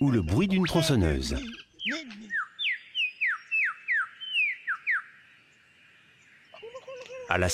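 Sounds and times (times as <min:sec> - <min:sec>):
speech: 0:00.0 - 0:01.6, 0:07.3 - 0:07.5
mimicking bird singing: 0:00.0 - 0:06.8.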